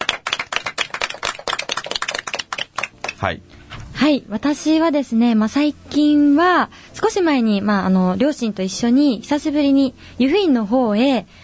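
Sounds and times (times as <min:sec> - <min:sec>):
hand clapping: 0:00.0 - 0:03.3
speech: 0:03.2 - 0:11.4.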